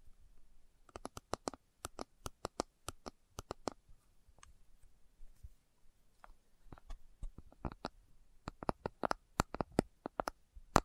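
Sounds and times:
slow tapping clicks: 0.9s - 3.8s, 7.4s - 10.8s.

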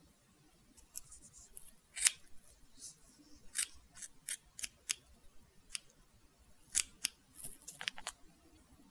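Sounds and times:
scissors snipping during a haircut: 0.8s - 2.4s, 3.4s - 5.0s, 6.7s - 8.1s.

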